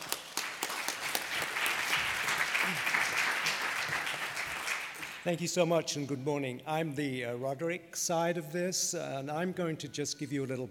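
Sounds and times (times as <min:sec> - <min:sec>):
audience applause welcoming two speakers: 0:00.0 - 0:05.2
speech: 0:05.2 - 0:10.6.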